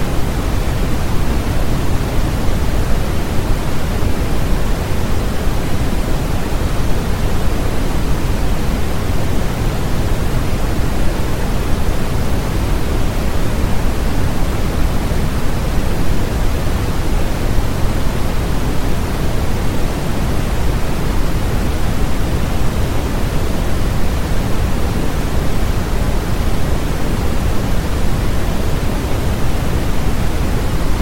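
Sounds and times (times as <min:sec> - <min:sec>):
white noise: 0:00.0 - 0:31.0.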